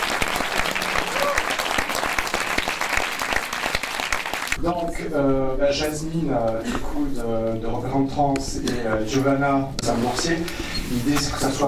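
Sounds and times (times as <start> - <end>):
audience applause: 0.0 - 4.6
speech: 4.7 - 11.6.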